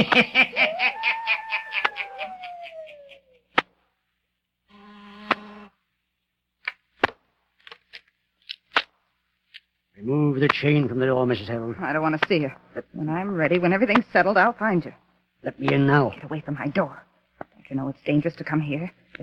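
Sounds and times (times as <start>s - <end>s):
speech: 0.0s - 1.2s, 10.0s - 17.1s, 17.7s - 19.2s
laughter: 0.0s - 3.5s
door buzzer: 4.7s - 5.7s.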